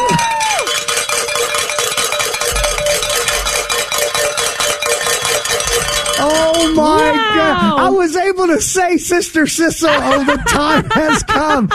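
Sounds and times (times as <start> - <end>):
bell rung to celebrate a pledge call: 0.0 - 7.9
laughter: 7.1 - 8.0, 9.7 - 11.7
speech: 8.0 - 11.7.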